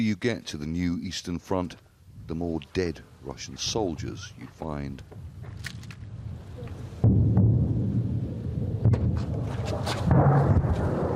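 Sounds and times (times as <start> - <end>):
speech: 0.0 - 5.8
shells and rockets exploding on a war front line: 7.0 - 11.1.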